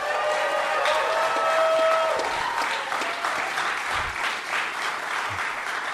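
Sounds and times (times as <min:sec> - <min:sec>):
live studio audience clapping: 0:00.0 - 0:05.9.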